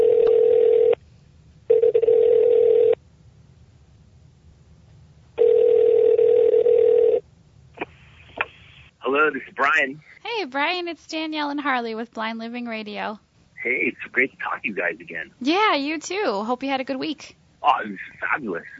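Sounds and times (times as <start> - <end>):
telephone dial tone: 0.0 - 1.0, 1.7 - 3.0, 5.4 - 7.2
speech: 9.6 - 13.2, 13.8 - 18.7.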